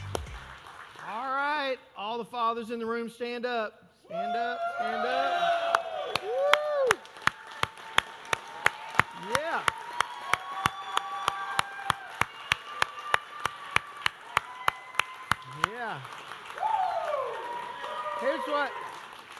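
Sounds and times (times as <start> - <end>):
audience clapping in unison: 0.0 - 1.6, 5.6 - 19.3
speech: 1.8 - 5.7, 9.2 - 9.8, 18.5 - 18.9.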